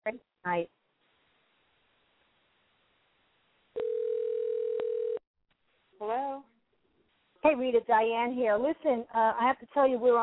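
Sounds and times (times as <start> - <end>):
speech: 0.1 - 0.7, 7.6 - 10.2
telephone dial tone: 3.8 - 5.2.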